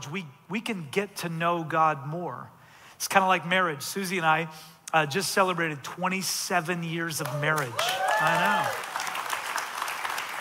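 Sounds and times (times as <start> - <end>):
speech: 0.1 - 8.9
audience applause: 7.2 - 10.3.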